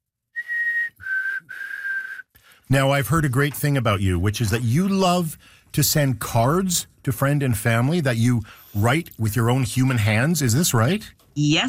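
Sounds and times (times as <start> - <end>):
person whistling imitation of black-capped chickadee call: 0.4 - 2.3
speech: 2.7 - 11.6.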